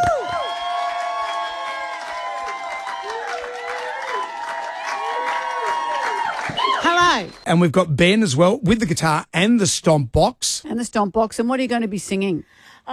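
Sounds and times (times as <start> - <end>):
small studio crowd cheering and whooping: 0.0 - 7.4
speech: 7.1 - 12.9.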